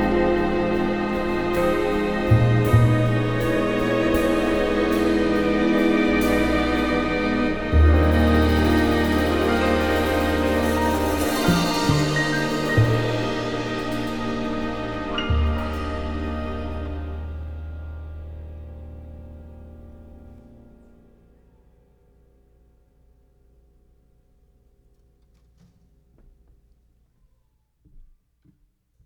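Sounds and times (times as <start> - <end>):
big band jazz ballad: 0.0 - 21.1.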